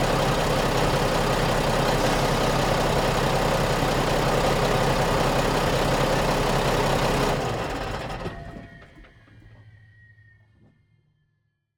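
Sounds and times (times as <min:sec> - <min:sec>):
semi truck starting: 0:00.0 - 0:09.0.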